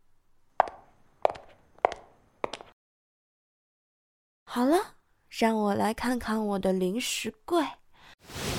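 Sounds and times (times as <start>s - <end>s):
light footsteps going upstairs: 0.6s - 2.8s
speech: 4.5s - 8.4s.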